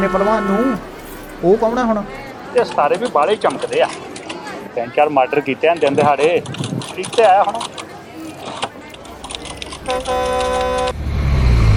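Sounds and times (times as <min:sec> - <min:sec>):
arriving bus horn: 0:00.0 - 0:00.9, 0:09.8 - 0:11.0
speech: 0:00.0 - 0:04.1, 0:04.8 - 0:07.8.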